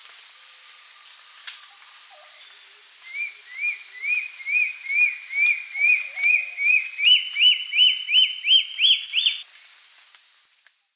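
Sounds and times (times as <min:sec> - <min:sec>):
Myrmornis torquata song in the eastern lowlands of South America: 0:03.1 - 0:09.4.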